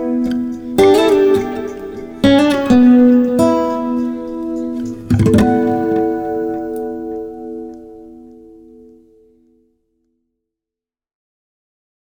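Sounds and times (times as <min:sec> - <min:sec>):
melody recorded with microphone and DI: 0:00.0 - 0:08.8.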